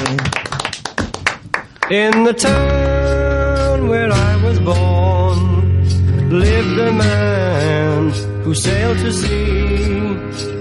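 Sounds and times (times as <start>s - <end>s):
audience applause: 0.0s - 2.2s
speech: 1.9s - 2.9s, 3.8s - 5.7s, 6.3s - 10.6s.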